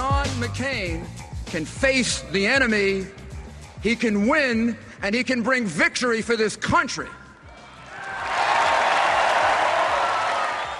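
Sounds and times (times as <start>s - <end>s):
speech: 0.4s - 3.2s, 3.8s - 7.2s
large convention crowd applauding and cheering: 7.5s - 10.7s.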